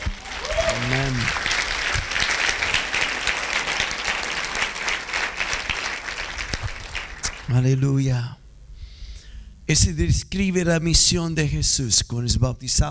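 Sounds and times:
applause: 0.0s - 7.8s
speech: 7.6s - 8.4s, 9.7s - 12.8s.

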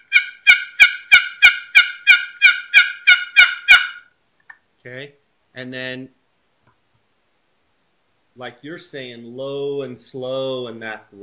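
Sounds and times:
choppy turkey assembly yelps made on a call: 0.0s - 4.2s
speech: 4.8s - 6.2s, 8.4s - 11.2s.

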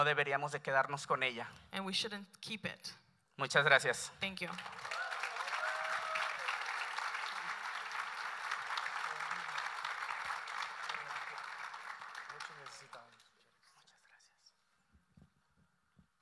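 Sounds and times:
speech: 0.0s - 5.0s
audience applause: 4.6s - 13.3s.

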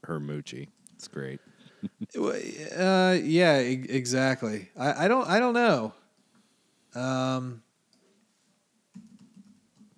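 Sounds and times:
speech: 0.0s - 6.0s, 6.9s - 7.6s
typing on a computer keyboard: 8.9s - 9.9s.

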